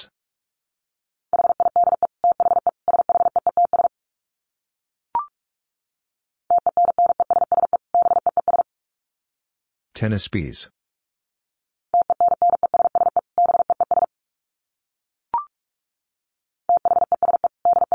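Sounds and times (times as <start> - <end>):
rapid Morse code at 45 words per minute: 1.4 - 3.9, 6.5 - 8.6, 12.0 - 14.1, 16.7 - 17.9
speech: 10.0 - 10.8.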